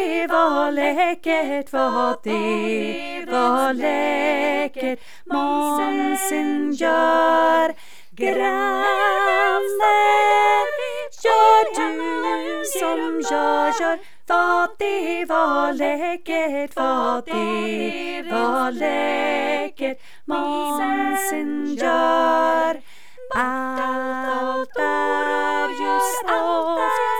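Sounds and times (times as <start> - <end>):
alto voice part singing a Swedish hymn: 0.0 - 27.1.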